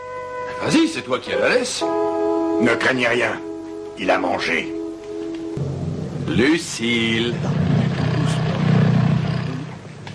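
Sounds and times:
speech: 0:00.6 - 0:04.8, 0:06.3 - 0:07.8
big lion growling roar: 0:07.4 - 0:09.9.

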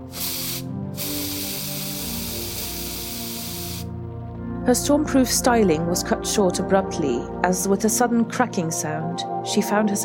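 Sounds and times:
hairspray aerosol can spraying: 0:00.0 - 0:03.9
speech: 0:04.7 - 0:10.0.

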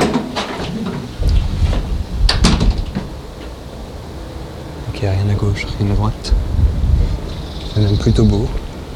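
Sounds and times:
building front door opening: 0:00.0 - 0:03.8
speech: 0:05.0 - 0:06.7, 0:07.8 - 0:08.6.

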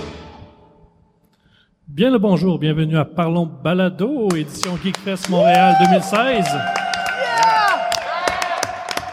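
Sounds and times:
speech: 0:02.0 - 0:06.8
crowd clapping: 0:04.3 - 0:09.1
crowd cheering: 0:05.0 - 0:09.1.

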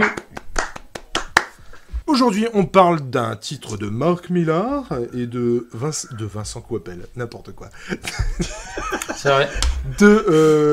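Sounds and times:
speech: 0:00.0 - 0:00.2, 0:02.1 - 0:10.7
hand claps: 0:00.0 - 0:01.8
laughter: 0:07.8 - 0:10.7.

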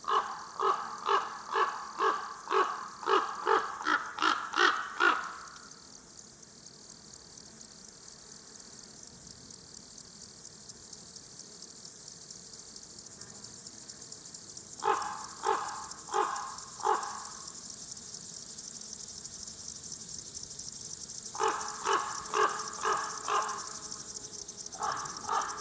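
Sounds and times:
Chorthippus apricarius grasshoppers singing in Forêt de Val Drôme: 0:00.0 - 0:25.5
thin steady high hiss: 0:05.2 - 0:25.5.

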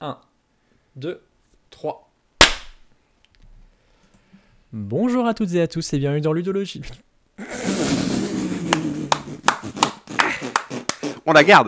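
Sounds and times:
speech: 0:00.0 - 0:00.3, 0:01.0 - 0:02.1, 0:04.7 - 0:07.1, 0:11.3 - 0:11.6
hand claps to sync a podcast recording: 0:02.4 - 0:02.8, 0:08.6 - 0:11.1.

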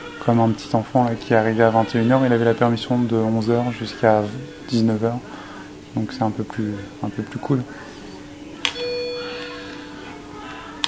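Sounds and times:
low hum: 0:00.0 - 0:10.8
speech: 0:00.2 - 0:05.4, 0:06.0 - 0:07.9
heart rate monitor alarm beeping: 0:08.7 - 0:09.8.

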